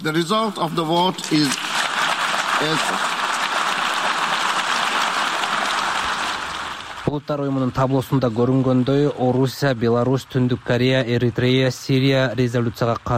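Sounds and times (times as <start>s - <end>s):
speech: 0.0s - 1.7s, 2.6s - 3.2s, 7.1s - 13.1s
diplomats applauding in the UN General Assembly hall: 0.7s - 7.2s.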